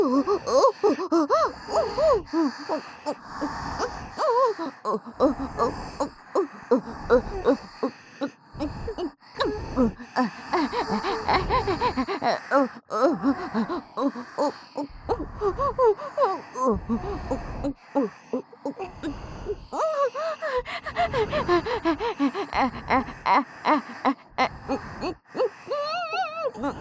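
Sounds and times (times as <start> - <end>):
breathy aroused sighs in the ear: 0.0 - 26.8
person moaning: 4.9 - 14.5, 15.1 - 26.8.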